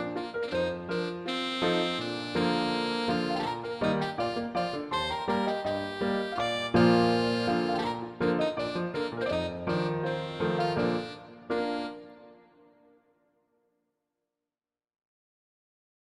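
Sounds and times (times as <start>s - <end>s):
violin playing allegretto: 0.0s - 12.3s.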